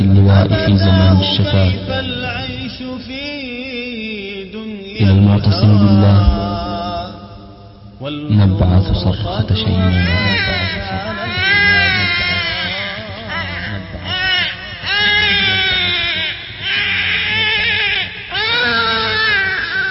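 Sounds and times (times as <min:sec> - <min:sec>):
speech: 0:00.3 - 0:02.2, 0:05.0 - 0:06.4, 0:08.0 - 0:10.8
baby crying: 0:09.9 - 0:19.8.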